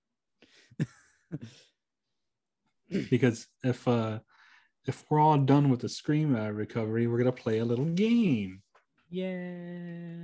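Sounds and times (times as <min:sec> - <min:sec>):
person coughing: 0:02.9 - 0:03.2
speech: 0:02.9 - 0:10.2.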